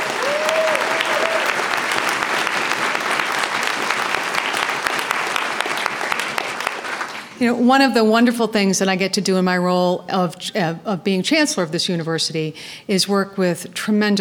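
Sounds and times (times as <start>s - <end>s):
audience applause: 0.0s - 7.4s
speech: 7.4s - 14.1s.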